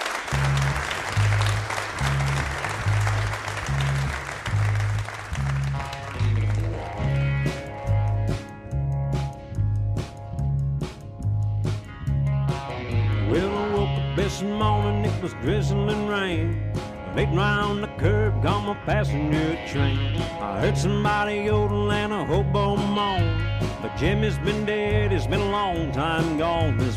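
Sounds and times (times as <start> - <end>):
audience applause after a live band: 0.0 - 7.7
band playing with drum hits and melodic tones: 0.0 - 26.9
steady pulsing bass groove: 0.3 - 26.9
speech: 14.4 - 26.9.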